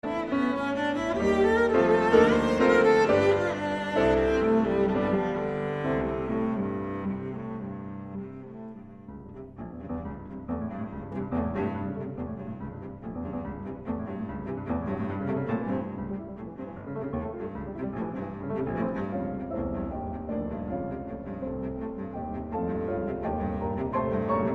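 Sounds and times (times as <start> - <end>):
cello and piano sonata: 0.0 - 24.5.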